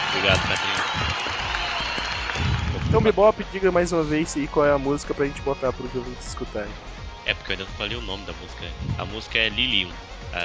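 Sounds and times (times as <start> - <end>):
applause: 0.0 - 3.2
speech: 0.1 - 1.6, 2.3 - 10.4.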